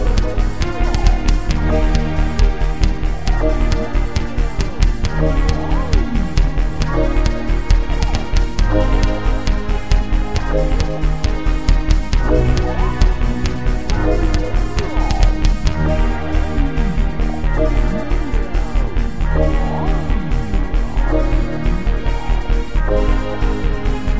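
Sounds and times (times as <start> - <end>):
MIDI techno remix of classical music: 0.0 - 24.1.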